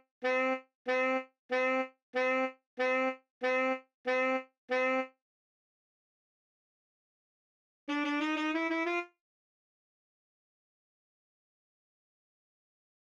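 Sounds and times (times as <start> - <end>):
saxophone: 0.2 - 5.2, 7.9 - 9.2.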